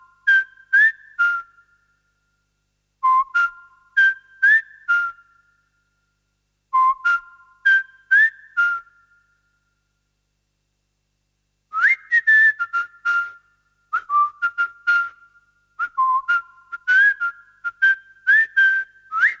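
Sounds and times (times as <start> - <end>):
whistle: 0.0 - 2.0, 3.0 - 5.8, 6.7 - 9.7, 11.7 - 19.3.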